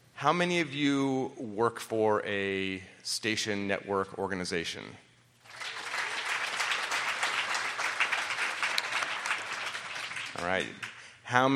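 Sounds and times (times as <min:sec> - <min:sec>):
speech: 0:00.2 - 0:05.0, 0:10.4 - 0:11.5
audience applause: 0:05.4 - 0:11.0.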